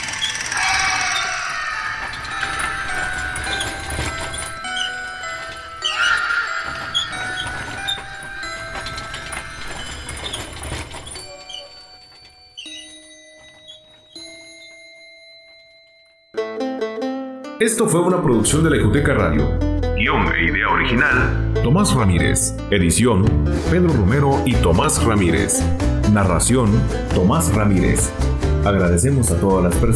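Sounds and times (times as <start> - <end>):
horse-drawn death cart hooves clattering: 0.0 - 15.8
horse-drawn death cart rolling: 0.0 - 15.8
ringing tones: 0.0 - 16.4
speech: 17.6 - 29.9.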